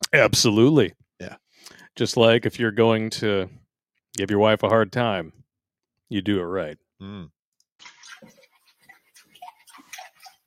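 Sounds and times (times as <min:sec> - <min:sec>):
speech: 0:00.1 - 0:03.6, 0:04.2 - 0:05.4, 0:06.1 - 0:08.4
running water trickling at a sink: 0:07.8 - 0:10.4.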